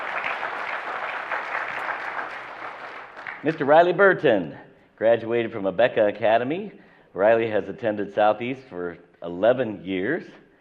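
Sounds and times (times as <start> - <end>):
audience applause honoring a graduate during a graduation recognition: 0.0 - 3.7
speech: 3.4 - 10.4.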